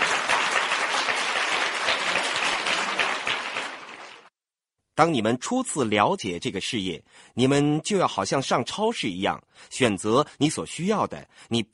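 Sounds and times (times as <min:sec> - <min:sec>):
crowd applause: 0:00.0 - 0:04.3
speech: 0:05.0 - 0:11.7.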